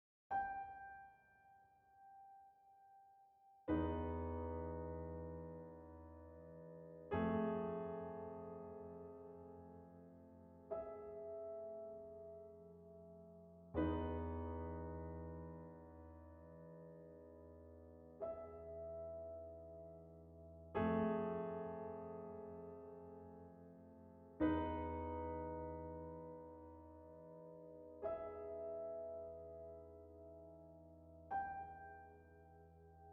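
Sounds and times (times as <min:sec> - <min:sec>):
piano piece: 0:00.3 - 0:33.1.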